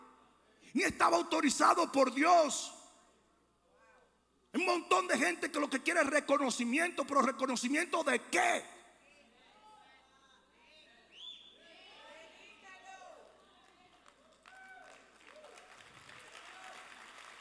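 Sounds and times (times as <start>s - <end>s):
speech: 0.7s - 2.8s, 4.6s - 8.8s
faint weak applause from audience: 13.6s - 17.3s.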